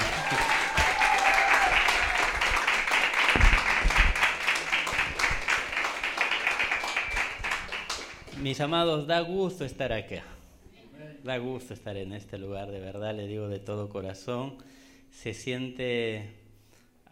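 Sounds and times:
audience applause: 0.0 - 8.4
speech: 8.5 - 10.4, 11.2 - 16.4.

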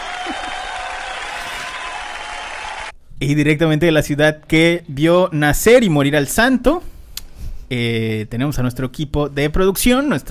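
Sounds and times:
crowd applause: 0.0 - 2.9
speech: 3.2 - 6.9, 7.7 - 10.2.

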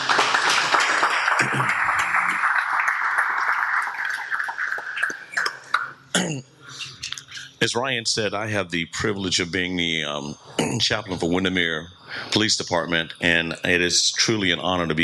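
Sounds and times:
audience round of applause: 0.0 - 5.9
speech: 6.2 - 6.5, 7.6 - 15.0.

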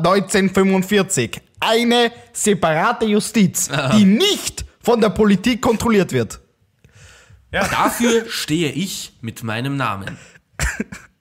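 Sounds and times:
speech: 0.0 - 6.4, 7.5 - 11.1
sneeze or cough: 10.6 - 11.2.

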